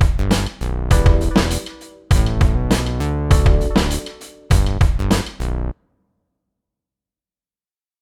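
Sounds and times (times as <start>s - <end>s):
backing track in E: 0.0s - 5.4s.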